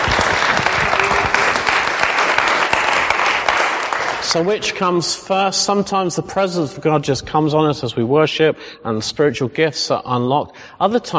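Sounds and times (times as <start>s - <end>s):
audience applause: 0.0s - 4.6s
speech: 4.3s - 11.1s.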